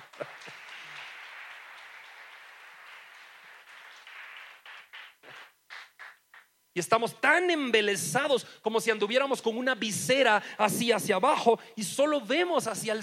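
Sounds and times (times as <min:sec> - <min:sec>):
audience applauding: 0:00.0 - 0:06.5
speech: 0:06.8 - 0:13.0.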